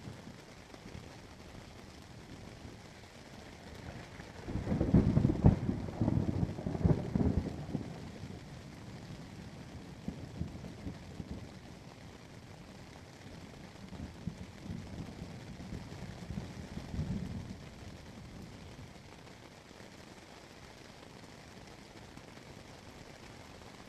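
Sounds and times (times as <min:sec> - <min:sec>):
thunderstorm: 0:00.1 - 0:12.5, 0:13.4 - 0:19.0.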